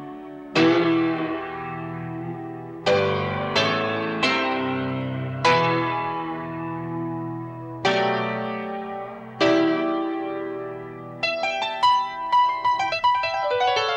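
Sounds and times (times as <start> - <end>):
backwards piano: 0.0 - 13.9.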